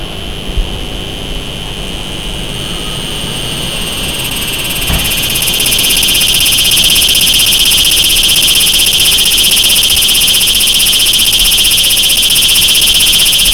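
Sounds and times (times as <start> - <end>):
cicada song: 0.0 - 13.5.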